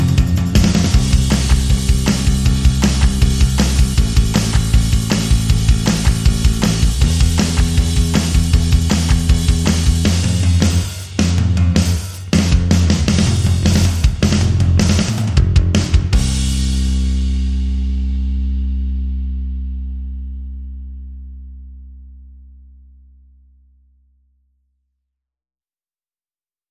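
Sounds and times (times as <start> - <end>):
drums: 0.0 - 19.4
bass: 0.0 - 25.2.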